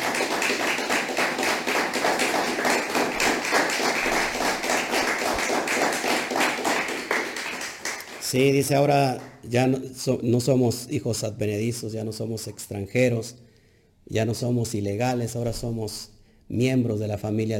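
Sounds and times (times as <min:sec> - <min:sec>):
audience applause: 0:00.0 - 0:08.3
speech: 0:08.3 - 0:13.4, 0:14.1 - 0:17.5.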